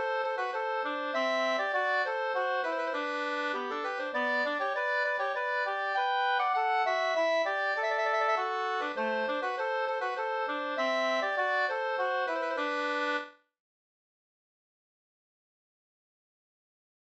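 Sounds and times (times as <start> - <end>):
folk dance polka music: 0.0 - 13.3.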